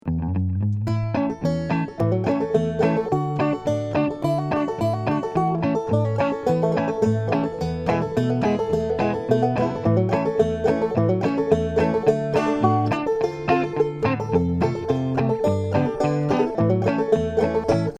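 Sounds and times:
banjo loop: 0:00.0 - 0:17.9
guitar: 0:00.0 - 0:17.9.

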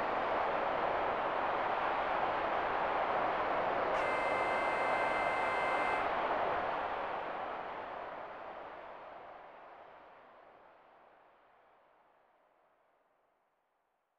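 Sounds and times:
crowd: 0:00.0 - 0:11.3.

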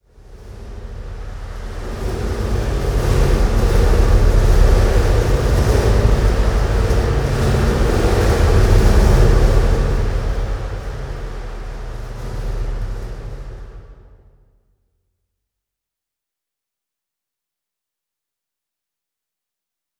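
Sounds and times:
stinger indoors: 0:00.0 - 0:14.4.

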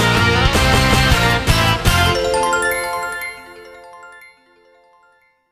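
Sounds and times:
stage clear jingle: 0:00.1 - 0:04.5.

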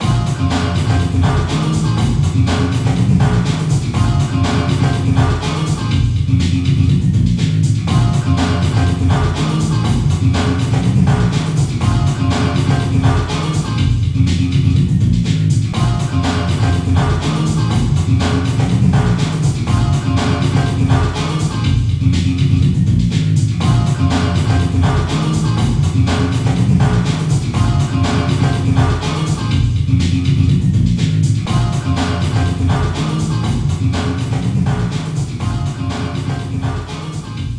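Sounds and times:
store background music: 0:00.0 - 0:37.5.

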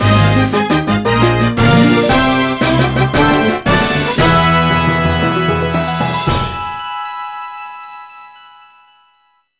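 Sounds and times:
ranking fanfare: 0:00.0 - 0:06.9.

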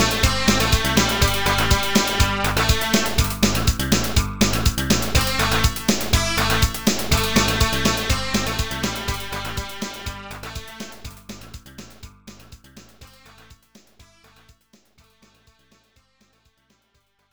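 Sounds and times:
loading screen background music: 0:00.0 - 0:12.0.

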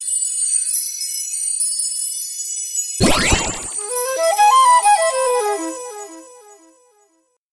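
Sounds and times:
snake charmer flute: 0:03.0 - 0:06.7.

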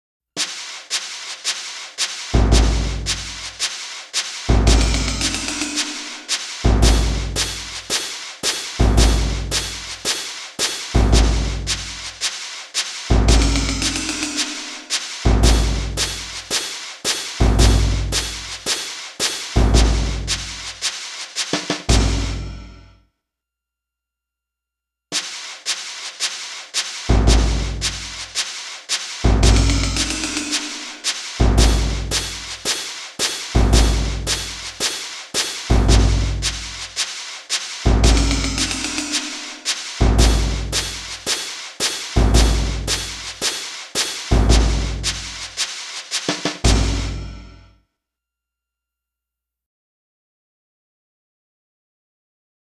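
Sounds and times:
drums practice: 0:00.4 - 0:22.9, 0:25.1 - 0:47.7.

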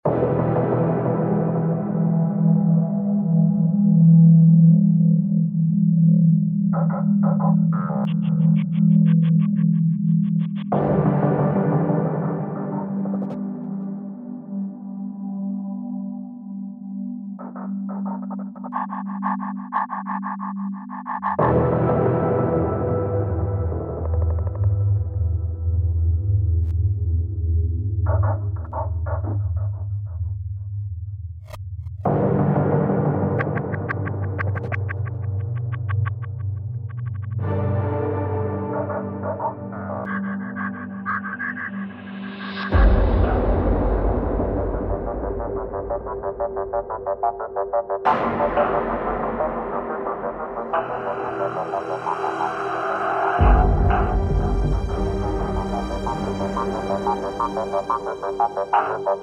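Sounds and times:
ambient music: 0:00.0 - 0:31.0, 0:31.9 - 0:59.2.

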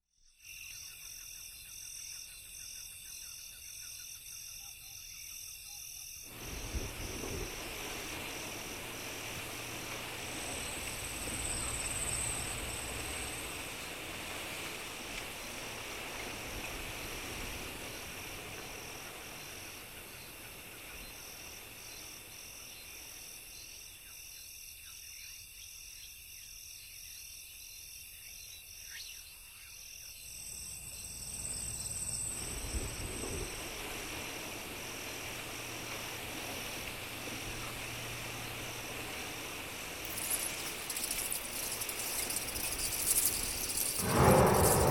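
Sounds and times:
night ambience: 0:05.6 - 0:24.1, 0:29.2 - 0:44.8.

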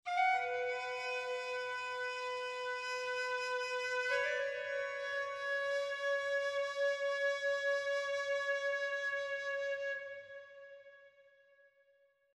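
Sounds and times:
calliope flute: 0:00.0 - 0:11.4.

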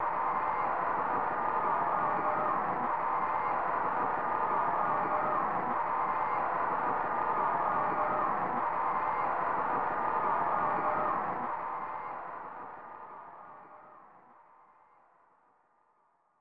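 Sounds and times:
applause: 0:00.0 - 0:15.1.

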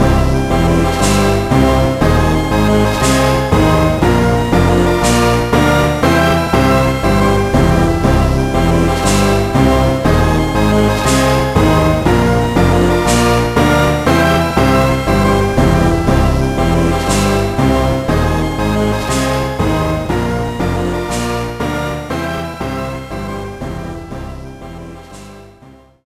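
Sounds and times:
perfect rating jingle: 0:00.0 - 0:25.3.

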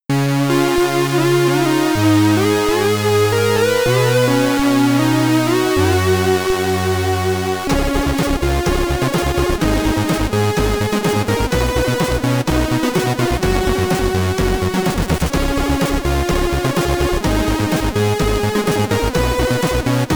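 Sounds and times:
SID stereo chiptune name entry music: 0:00.1 - 0:20.1.

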